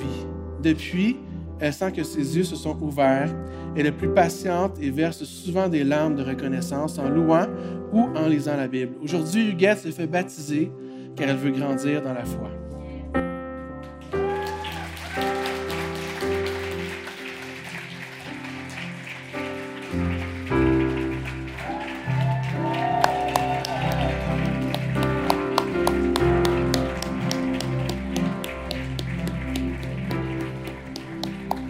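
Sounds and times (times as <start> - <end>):
speech: 0.6 - 13.2
crowd clapping: 13.8 - 31.6.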